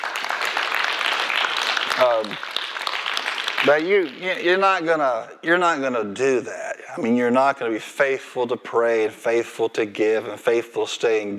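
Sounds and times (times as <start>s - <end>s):
audience applauding: 0.0s - 4.6s
speech: 2.0s - 2.7s, 3.6s - 11.3s.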